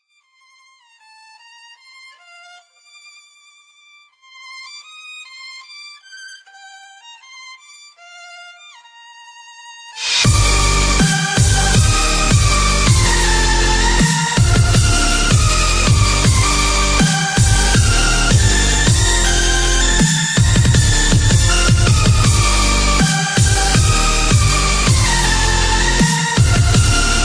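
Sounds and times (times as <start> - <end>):
dubstep remix: 10.0 - 27.2.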